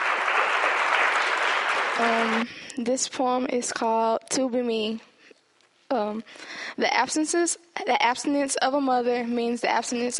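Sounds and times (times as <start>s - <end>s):
audience applause: 0.0s - 2.5s
speech: 2.0s - 5.1s, 5.9s - 10.1s.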